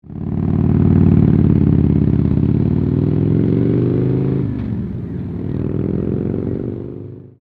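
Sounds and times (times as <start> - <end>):
motorcycle taking off: 0.0 - 7.4.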